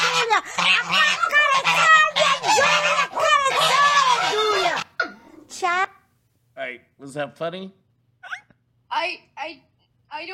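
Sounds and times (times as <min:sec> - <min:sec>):
duck quacking: 0:00.0 - 0:05.0
speech: 0:07.0 - 0:07.8, 0:09.0 - 0:10.3.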